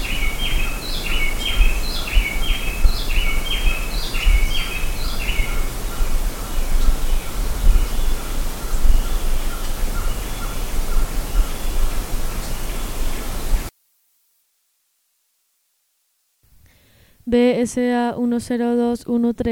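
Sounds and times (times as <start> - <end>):
bird chirping: 0.0 - 13.7
wind rumble: 0.0 - 13.7
speech: 17.3 - 19.5.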